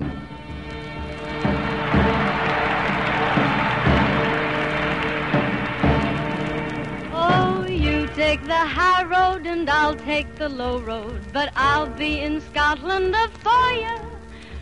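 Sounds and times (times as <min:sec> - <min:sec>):
audience applause: 0:00.6 - 0:08.1
speech: 0:08.4 - 0:14.1.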